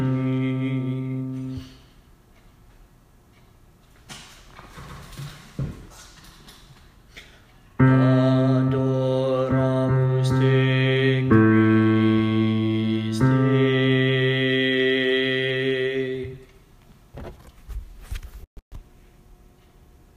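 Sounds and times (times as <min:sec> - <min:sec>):
bass vocals for choir practice: 0:00.0 - 0:01.6, 0:07.8 - 0:16.5.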